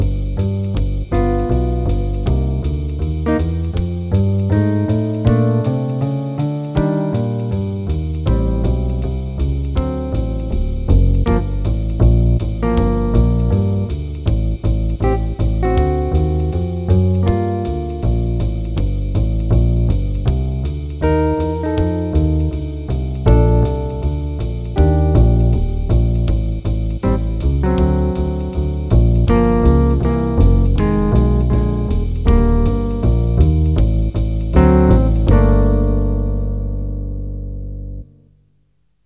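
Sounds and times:
play-along music at qn 160: 0.4 - 36.6.

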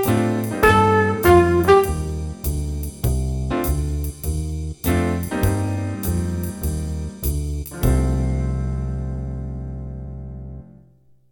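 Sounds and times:
trumpet: 0.0 - 2.8
jazz improvisation in C minor with jazz rhythms: 0.0 - 10.8.

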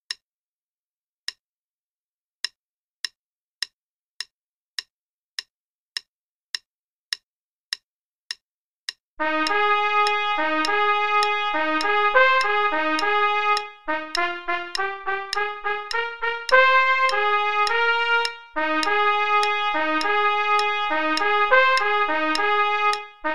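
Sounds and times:
play-along metronome click at 104 quarter notes per minute: 9.4 - 23.2.

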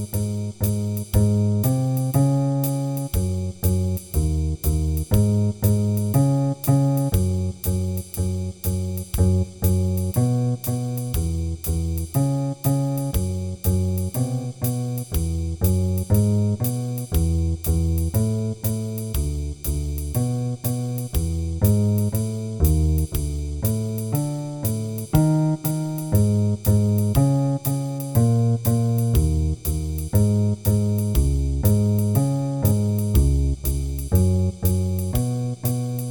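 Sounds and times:
jazz backing track with ii-V-I chord progressions: 0.0 - 36.0.

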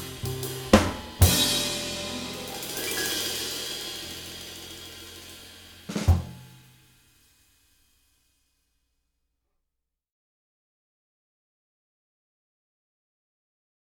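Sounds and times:
rhythm: 0.0 - 6.8.

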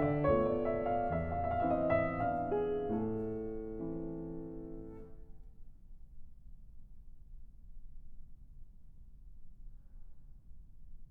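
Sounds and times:
waltz in A minor: 0.0 - 5.2.

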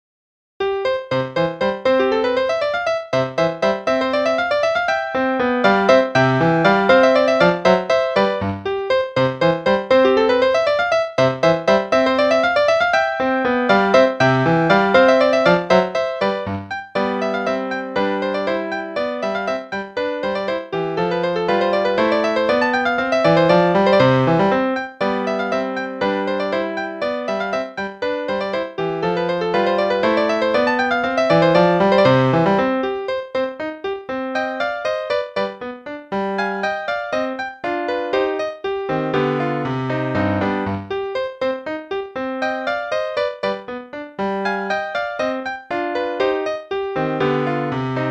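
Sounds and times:
capriccio play-along music at quarter note 120: 0.6 - 48.1.

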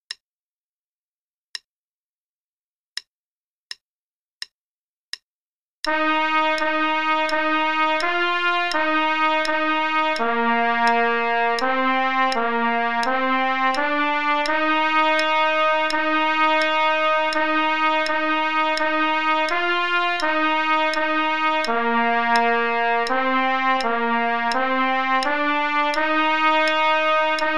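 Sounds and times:
trumpet play-along: 5.9 - 27.5.

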